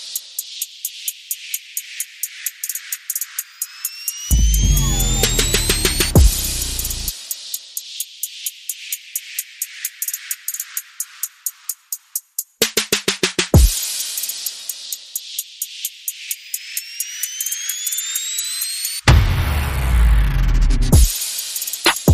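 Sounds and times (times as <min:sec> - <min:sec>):
percussion and effects: 0:04.3 - 0:07.3, 0:16.5 - 0:22.1.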